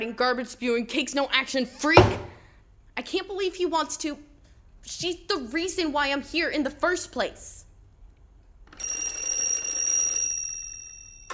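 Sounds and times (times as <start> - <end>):
speech: 0.0 - 2.3, 3.0 - 7.6
telephone bell ringing: 8.8 - 11.3.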